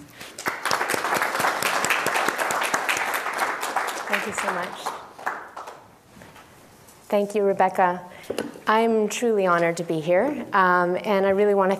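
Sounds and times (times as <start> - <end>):
audience applause welcoming a lecturer: 0.4 - 5.8
speech: 4.1 - 4.9, 7.1 - 11.7.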